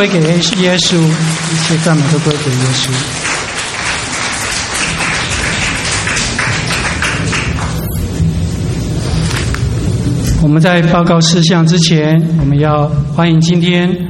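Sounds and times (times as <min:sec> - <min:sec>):
speech: 0:00.0 - 0:03.4, 0:10.4 - 0:14.0
audience applause: 0:00.0 - 0:10.2.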